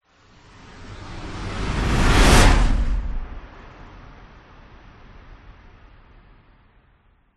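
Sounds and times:
whoosh: 0:00.4 - 0:04.0.

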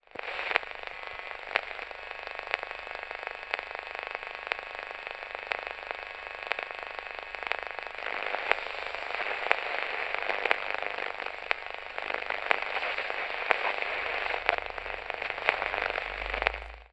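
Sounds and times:
radio static from lost signal: 0:00.1 - 0:16.9.

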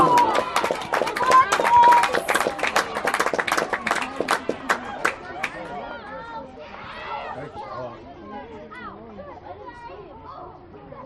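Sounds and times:
parents and children clapping at a school soccer competition: 0:00.0 - 0:05.8
parents and children cheering at a school soccer competition: 0:00.0 - 0:07.8.

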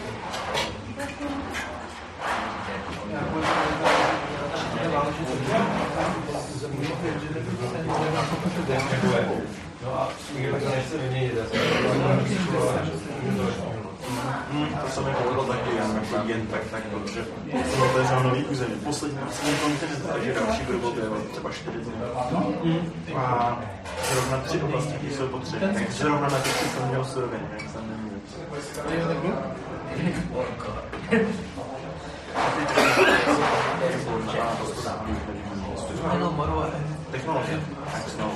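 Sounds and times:
medium crowd murmur in an Indian restaurant interior in Prague: 0:00.0 - 0:38.3
people eating food from metal plates: 0:00.0 - 0:38.3
heavy coughing: 0:11.5 - 0:12.2, 0:32.7 - 0:33.6.

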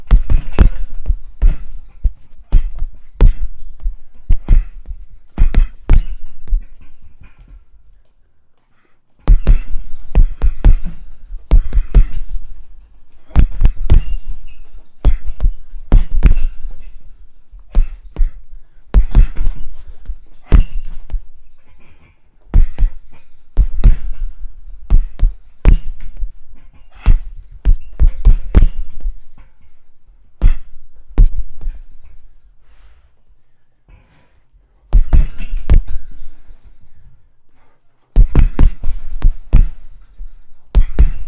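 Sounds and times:
punches on a gym punch bag on chains: 0:00.0 - 0:06.7, 0:09.3 - 0:12.6, 0:13.2 - 0:17.0, 0:17.7 - 0:21.2, 0:22.5 - 0:29.2, 0:30.4 - 0:31.8, 0:34.9 - 0:36.2, 0:38.2 - 0:40.0, 0:40.7 - 0:41.2.

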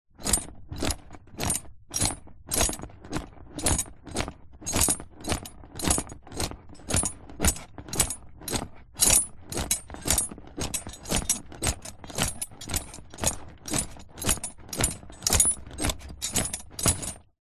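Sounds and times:
leather saddle movements during slow horse riding: 0:00.2 - 0:17.3
metal jingles of horse riding tack: 0:03.6 - 0:17.3.

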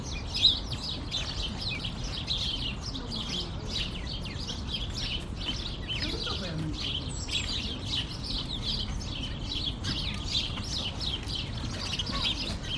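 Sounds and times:
sparrows chirping in a park: 0:00.0 - 0:12.7.

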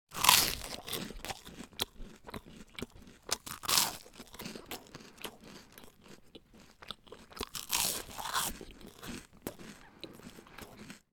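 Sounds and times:
person eating crunchy toast: 0:00.1 - 0:11.1.

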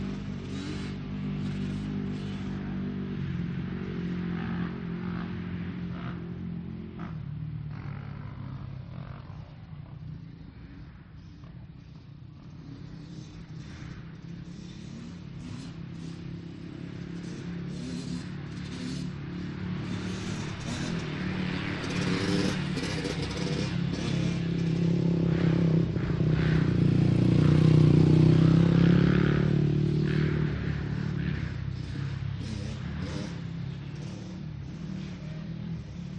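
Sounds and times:
motocross race motorcycles passing: 0:00.0 - 0:36.1.

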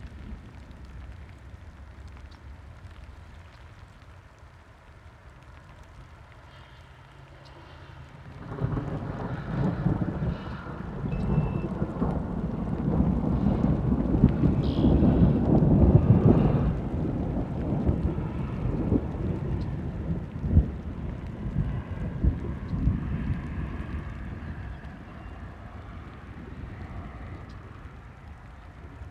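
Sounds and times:
rain during thunderstorm in Illinois USA: 0:00.0 - 0:29.1
thunder in Illinois USA: 0:07.6 - 0:25.1.

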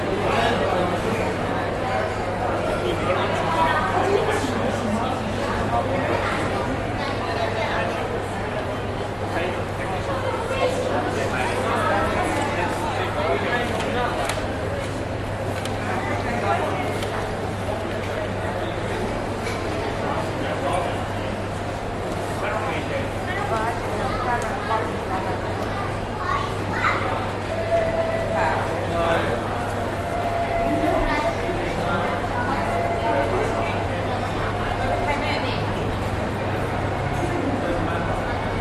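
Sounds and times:
people chatting in a market hall in Budapest Hungary: 0:00.0 - 0:38.5.

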